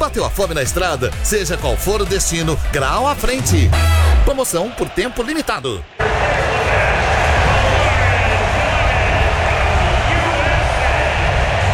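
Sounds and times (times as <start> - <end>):
speech: 0.0 - 6.4
stadium crowd applause at SoFi Stadium in Los Angeles: 4.3 - 11.7.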